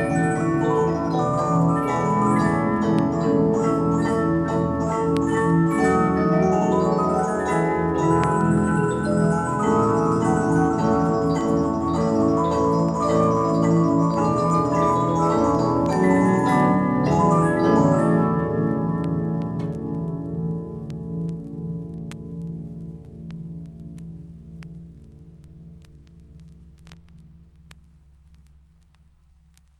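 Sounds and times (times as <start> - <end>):
music box with metal disc playing: 0.0 - 20.5.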